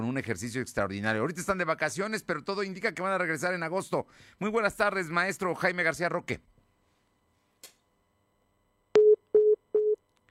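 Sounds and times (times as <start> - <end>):
speech: 0.0 - 6.5
phone busy tone beeps after a dropped call: 9.0 - 10.0.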